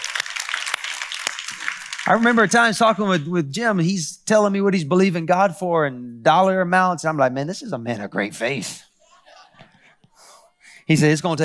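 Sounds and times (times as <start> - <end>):
audience clapping hands: 0.0 - 3.3
speech: 2.0 - 8.9, 10.9 - 11.4.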